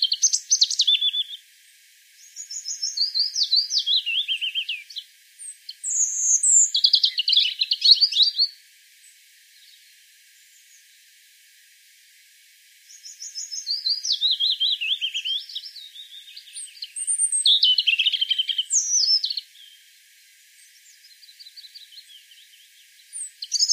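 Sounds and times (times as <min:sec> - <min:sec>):
European robin singing: 0:00.0 - 0:01.5, 0:02.2 - 0:08.6, 0:12.9 - 0:19.9, 0:20.6 - 0:23.7.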